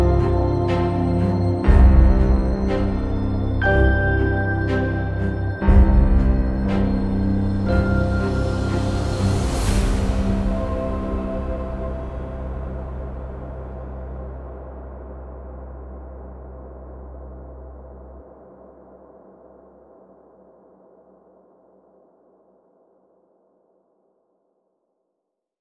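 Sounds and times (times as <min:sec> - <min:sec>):
percussive underscore music: 0:00.0 - 0:13.7.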